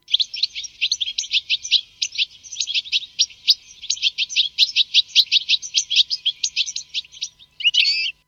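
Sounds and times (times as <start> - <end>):
goldfinch fledglings' begging calls: 0.1 - 8.2.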